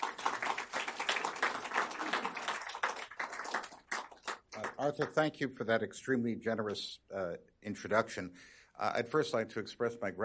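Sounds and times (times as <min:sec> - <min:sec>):
audience applause welcoming a speaker at a Heritage Foundation event: 0:00.0 - 0:05.1
speech: 0:04.8 - 0:10.2.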